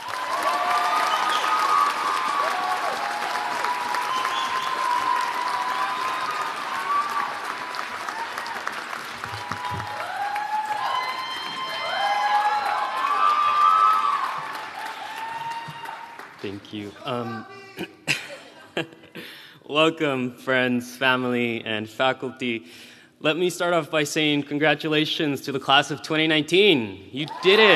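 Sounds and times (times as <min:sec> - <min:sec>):
whoops: 0:00.0 - 0:16.2
audience applause and cheering at a School of Education commencement: 0:00.0 - 0:17.8, 0:27.2 - 0:27.7
speech: 0:16.7 - 0:18.0, 0:19.7 - 0:27.7.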